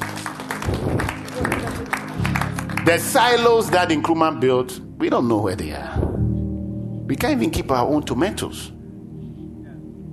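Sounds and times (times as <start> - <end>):
crowd clapping: 0.0 - 3.6
speech: 2.9 - 6.0, 7.1 - 8.8.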